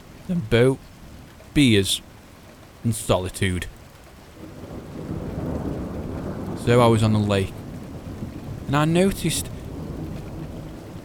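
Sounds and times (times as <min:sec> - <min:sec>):
rain: 0:00.0 - 0:11.0
speech: 0:00.3 - 0:00.9, 0:01.6 - 0:02.1, 0:02.8 - 0:03.8, 0:06.6 - 0:07.6, 0:08.7 - 0:09.5
thunder: 0:04.4 - 0:06.8, 0:07.5 - 0:08.7, 0:09.5 - 0:11.0.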